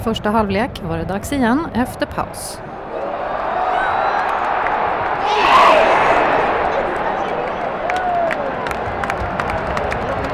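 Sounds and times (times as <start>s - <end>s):
speech: 0.0s - 2.7s
stadium crowd cheering: 2.6s - 10.3s.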